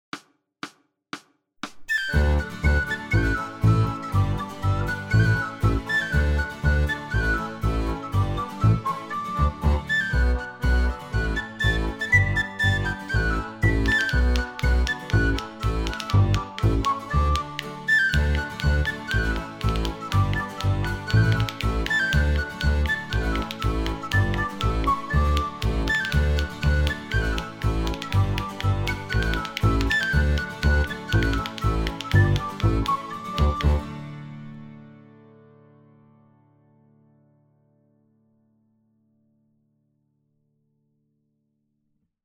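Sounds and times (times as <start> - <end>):
16-bar Irish folk tune: 1.8 - 35.5.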